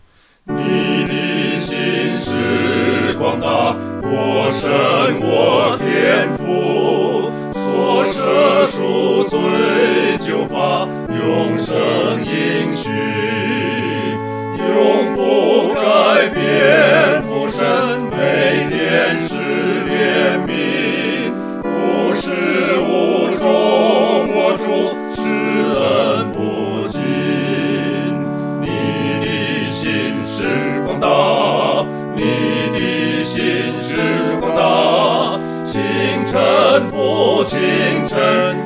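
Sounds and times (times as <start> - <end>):
four-part choir singing: 0.5 - 38.6.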